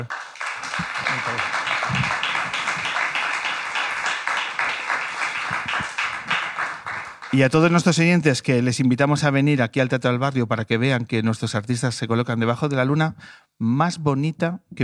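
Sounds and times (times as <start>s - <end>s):
speech: 0.0s - 0.2s, 1.1s - 2.1s, 7.3s - 14.8s
audience applause: 0.0s - 7.6s.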